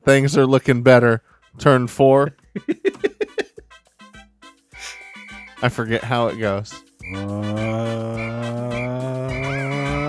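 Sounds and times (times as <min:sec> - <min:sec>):
speech: 0:00.0 - 0:02.8, 0:05.6 - 0:08.8
laughter: 0:02.5 - 0:03.6, 0:07.1 - 0:10.0
race car tires screeching: 0:05.0 - 0:10.0.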